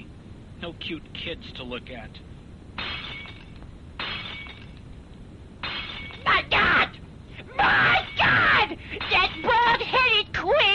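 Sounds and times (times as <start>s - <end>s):
speech: 0.6s - 2.9s
old dishes being smashed: 2.8s - 4.9s, 5.6s - 6.5s, 7.8s - 9.9s
tinkling spray of dish shards: 2.8s - 4.9s, 5.6s - 6.4s, 7.9s - 9.8s.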